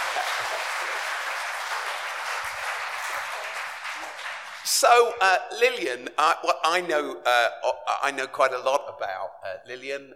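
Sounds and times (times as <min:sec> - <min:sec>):
audience applause: 0:00.0 - 0:04.8
speech: 0:00.2 - 0:02.0, 0:04.6 - 0:10.1.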